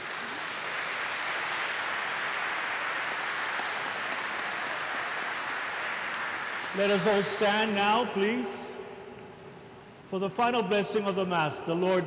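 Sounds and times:
church congregation at Mass applauding the parish's grandparents: 0.0 - 8.1
speech: 6.8 - 8.7, 10.1 - 12.0.

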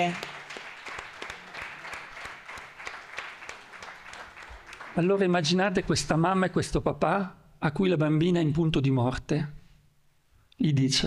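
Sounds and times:
speech: 0.0 - 0.3, 5.0 - 9.6, 10.6 - 11.0
audience applause: 0.0 - 5.5.

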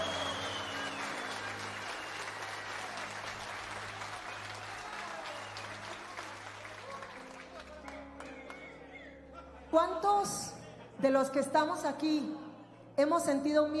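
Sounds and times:
audience applause: 0.0 - 8.8
speech: 9.8 - 12.4, 13.0 - 13.7.

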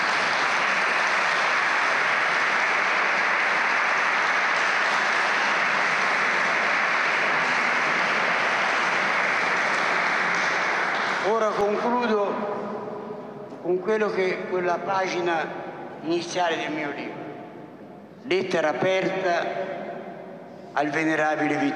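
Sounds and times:
audience applauding warmly: 0.0 - 12.1
speech: 13.7 - 17.2, 18.2 - 19.8, 20.7 - 21.7.

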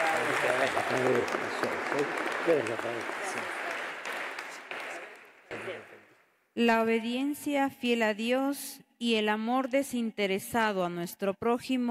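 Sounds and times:
crowd applauding: 0.0 - 6.0
speech: 0.6 - 3.5, 6.6 - 11.8.

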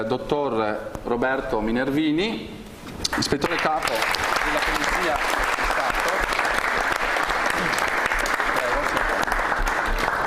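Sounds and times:
speech: 0.0 - 5.6
audience applause: 3.1 - 10.2.

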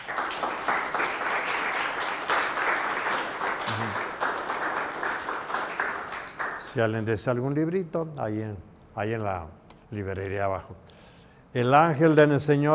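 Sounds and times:
audience applause: 0.0 - 6.7
speech: 6.8 - 10.9, 11.5 - 12.7.

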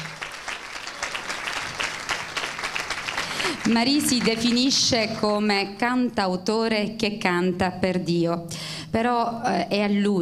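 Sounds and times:
audience applause: 0.0 - 4.7
speech: 3.6 - 10.2.

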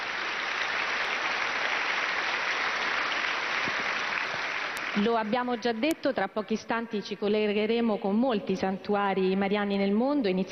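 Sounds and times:
audience applause: 0.0 - 5.1
speech: 5.0 - 10.4.

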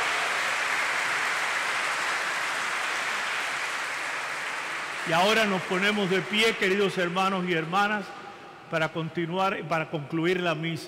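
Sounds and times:
audience applause: 0.0 - 7.7
speech: 5.1 - 10.8.

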